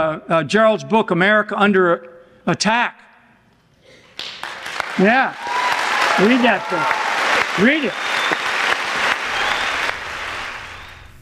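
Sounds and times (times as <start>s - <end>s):
speech: 0.0s - 3.0s, 5.0s - 5.6s, 6.2s - 8.1s
audience clapping and cheering: 4.1s - 11.1s.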